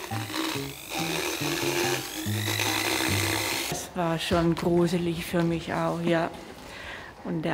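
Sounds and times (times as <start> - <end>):
power tool grinding down a horse's teeth: 0.0 - 3.9
speech: 0.1 - 2.6, 4.0 - 6.5, 7.2 - 7.5.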